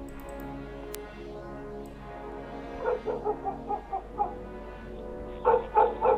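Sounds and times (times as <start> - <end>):
dogs barking and whimpering: 2.8 - 4.4, 5.4 - 6.1.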